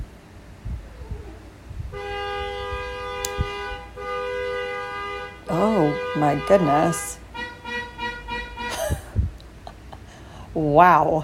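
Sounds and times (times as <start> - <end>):
car horns honking: 1.9 - 9.2
speech: 5.6 - 7.2, 10.6 - 11.2.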